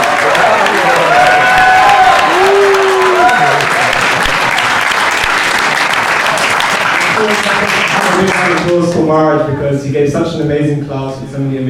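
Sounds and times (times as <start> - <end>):
audience applause: 0.0 - 9.0
speech: 9.1 - 11.6.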